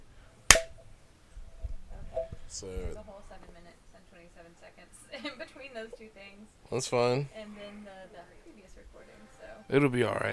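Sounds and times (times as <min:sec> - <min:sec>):
hand clap for recording sync: 0:00.5 - 0:00.7
speech: 0:02.5 - 0:10.3.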